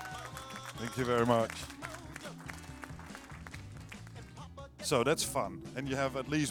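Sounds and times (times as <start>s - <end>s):
audience clapping: 0.0s - 4.4s
speech: 0.8s - 1.8s, 4.9s - 6.5s.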